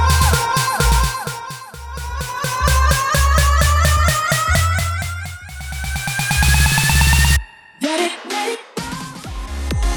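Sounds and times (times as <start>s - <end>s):
electro intro at 128 bpm: 0.0s - 7.7s.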